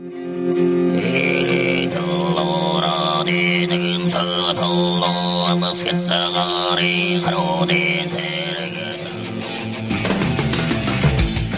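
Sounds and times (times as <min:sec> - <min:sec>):
Mongolian throat singing drone: 0:00.0 - 0:09.8
heavy metal music: 0:00.0 - 0:11.5.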